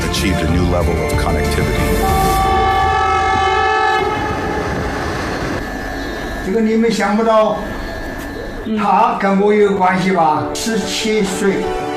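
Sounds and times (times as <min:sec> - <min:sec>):
speech: 0:00.2 - 0:01.7, 0:06.5 - 0:07.8, 0:08.7 - 0:11.8
train whistle: 0:02.0 - 0:06.2.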